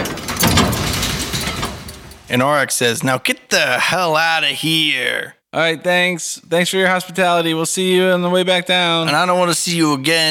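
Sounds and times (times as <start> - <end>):
heavy door rumbling as it rolls open: 0.0 - 2.3
speech: 2.3 - 10.2.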